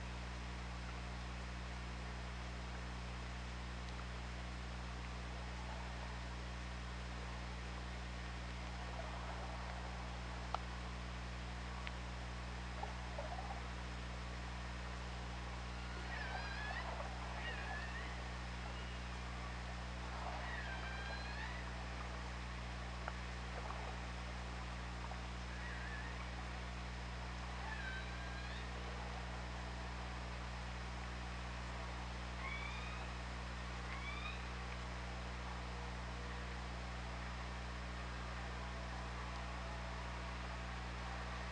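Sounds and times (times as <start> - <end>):
underwater hum and hiss: 0.0 - 41.5
killer whale calls: 15.7 - 22.3, 23.5 - 26.6, 27.4 - 29.3, 32.3 - 33.2, 33.8 - 34.6.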